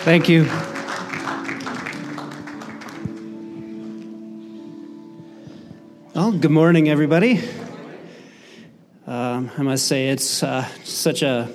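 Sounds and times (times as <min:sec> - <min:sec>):
speech: 0:00.0 - 0:00.6, 0:06.3 - 0:07.6, 0:09.4 - 0:11.5
audience clapping: 0:00.0 - 0:04.2, 0:07.5 - 0:07.8.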